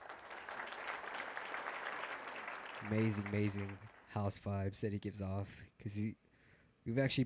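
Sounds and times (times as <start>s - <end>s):
round of applause: 0.0s - 4.3s
speech: 2.8s - 7.2s.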